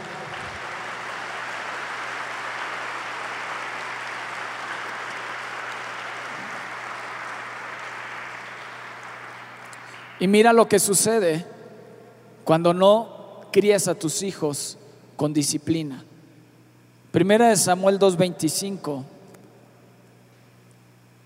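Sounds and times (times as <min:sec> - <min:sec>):
audience applause: 0:00.0 - 0:10.3
speech: 0:10.2 - 0:11.6, 0:12.5 - 0:16.1, 0:17.1 - 0:19.2.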